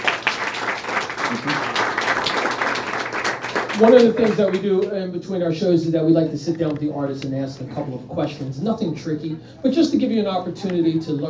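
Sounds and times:
audience applause: 0.0s - 4.9s
speech: 1.3s - 1.7s, 3.8s - 11.2s.

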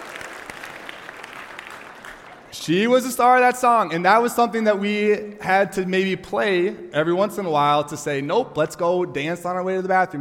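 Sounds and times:
audience applause: 0.0s - 2.6s
speech: 2.5s - 10.2s.

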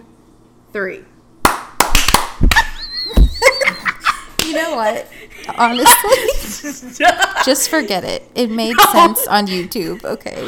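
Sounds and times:
speech: 0.7s - 1.2s, 4.5s - 10.4s
hand claps: 1.4s - 3.3s
laughter: 3.0s - 10.2s.

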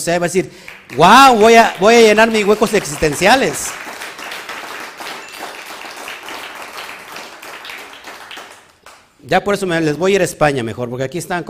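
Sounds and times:
speech: 0.0s - 3.8s, 9.3s - 11.4s
audience applause: 0.6s - 9.0s.

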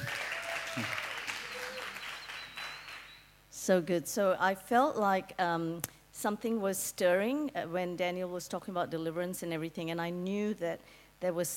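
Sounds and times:
audience applause: 0.0s - 3.2s
speech: 0.8s - 1.0s, 3.7s - 11.5s.

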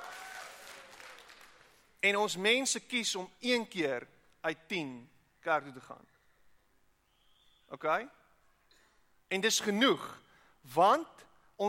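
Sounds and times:
group hand clapping: 0.0s - 1.8s
speech: 2.0s - 6.1s, 7.7s - 8.2s, 9.3s - 11.6s.

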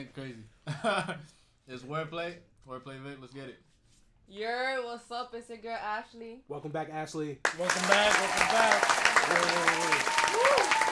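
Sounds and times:
speech: 0.0s - 3.7s, 4.3s - 10.8s
group applause: 7.4s - 10.9s
voices cheering and whooping: 8.4s - 10.9s.

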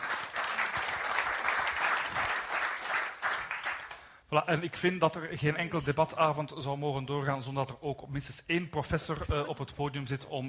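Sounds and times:
audience applause: 0.0s - 4.1s
speech: 4.3s - 10.4s.

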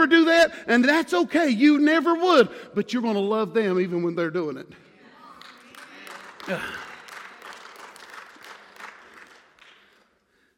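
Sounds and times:
speech: 0.0s - 4.9s, 6.5s - 6.9s
audience clapping and cheering: 5.3s - 10.5s.

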